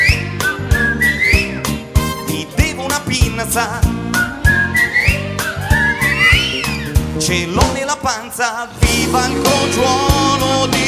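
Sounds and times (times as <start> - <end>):
whistled melody in a pop-rock song: 0.0 - 7.2
band accompaniment: 0.0 - 10.8
speech: 3.6 - 3.9, 7.3 - 10.8.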